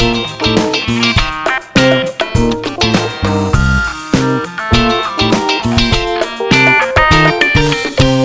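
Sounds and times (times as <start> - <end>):
flat funk music loop: 0.0 - 8.2.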